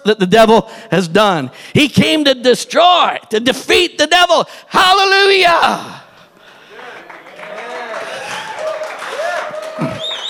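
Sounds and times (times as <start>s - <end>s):
speech: 0.0s - 6.0s
audience applause: 6.7s - 10.2s.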